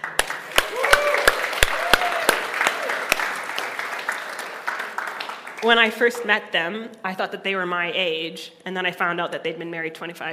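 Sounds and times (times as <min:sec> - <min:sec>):
audience applause: 0:00.0 - 0:06.0
whoops and cheers: 0:00.5 - 0:03.3
speech: 0:05.6 - 0:10.3.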